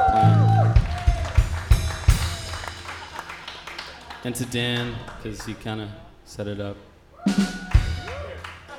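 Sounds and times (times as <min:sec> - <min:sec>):
audience clapping and applause: 0:00.0 - 0:05.8, 0:07.7 - 0:08.7
speech: 0:04.2 - 0:07.6.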